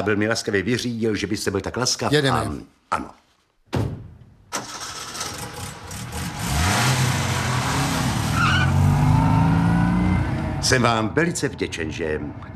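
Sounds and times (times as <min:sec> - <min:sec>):
speech: 0:00.0 - 0:03.9, 0:10.7 - 0:12.5
early motor car starting and driving off: 0:04.6 - 0:10.8.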